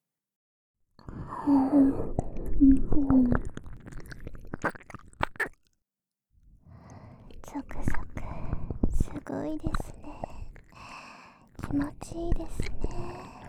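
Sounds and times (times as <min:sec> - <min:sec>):
soft ASMR whispering: 0:01.2 - 0:03.5, 0:06.8 - 0:13.4
speech: 0:01.5 - 0:03.5
ASMR wet mouth clicks, smacks and chewing noises: 0:02.4 - 0:05.7, 0:07.6 - 0:13.4.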